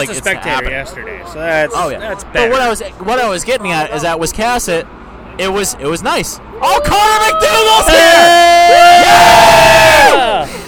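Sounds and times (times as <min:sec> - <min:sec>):
speech: 0:00.0 - 0:10.6
group yelling to get attention: 0:06.5 - 0:10.5.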